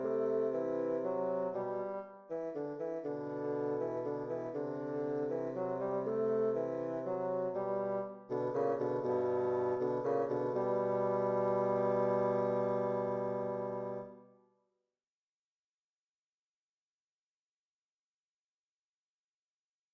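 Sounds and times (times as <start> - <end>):
easy bassoon duo: 0.0 - 14.2.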